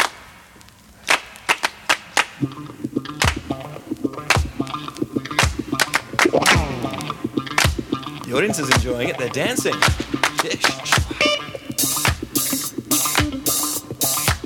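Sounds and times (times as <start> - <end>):
hand clap rhythm of a disco record: 1.0 - 9.0, 9.7 - 14.4
speech: 2.4 - 4.3, 8.3 - 10.7.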